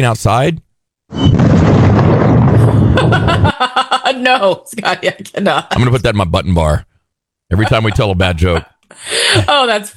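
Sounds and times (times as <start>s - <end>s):
speech: 0.0s - 1.9s, 3.6s - 6.9s, 7.5s - 9.9s
meteor breaking up in the atmosphere with a loud boom: 1.2s - 3.5s.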